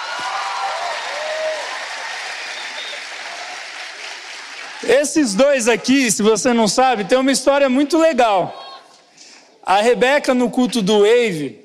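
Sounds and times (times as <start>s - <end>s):
audience applause: 0.0s - 5.1s
speech: 4.8s - 8.6s, 9.7s - 11.6s.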